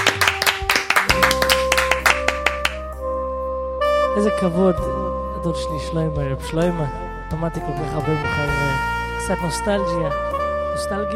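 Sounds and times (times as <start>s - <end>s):
audience clapping in rhythm: 0.0s - 3.0s
sustained keyboard chords: 0.0s - 11.1s
speech: 4.2s - 11.1s.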